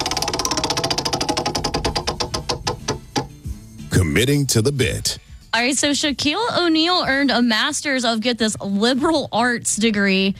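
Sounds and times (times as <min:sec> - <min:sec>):
prize wheel spinning: 0:00.0 - 0:02.1
speech: 0:04.2 - 0:10.3.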